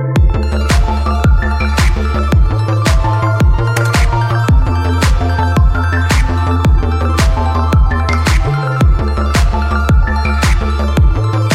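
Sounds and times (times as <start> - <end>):
synthwave ringtone: 0.2 - 11.5.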